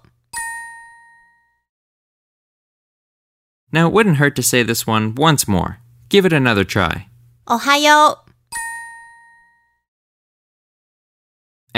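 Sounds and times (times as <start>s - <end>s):
audio cue chime: 0.3s - 1.6s, 8.5s - 9.8s
speech: 3.7s - 8.6s.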